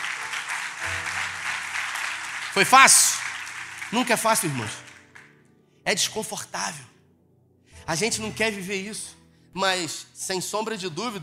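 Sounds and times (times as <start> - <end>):
crowd applause: 0.0 - 5.3
speech: 2.6 - 3.2, 3.9 - 4.8, 5.8 - 6.9, 7.9 - 11.2.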